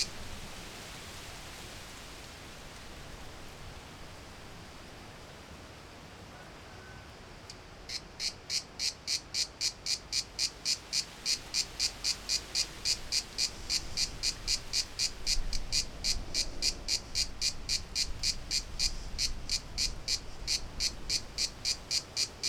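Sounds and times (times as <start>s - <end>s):
cicadas in Greece: 0.0s - 22.4s.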